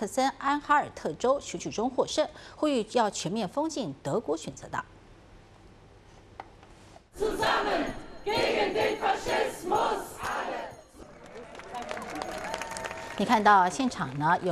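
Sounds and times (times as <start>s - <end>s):
speech: 0.0s - 5.0s, 13.2s - 14.5s
large protest crowd chanting anti-fascist slogans outdoors: 7.2s - 11.5s
scattered clapping: 11.0s - 14.5s.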